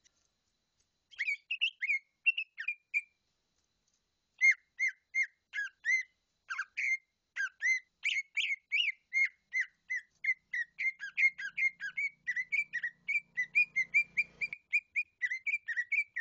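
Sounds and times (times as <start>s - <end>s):
bird chirping song: 1.1s - 3.2s, 4.4s - 16.1s.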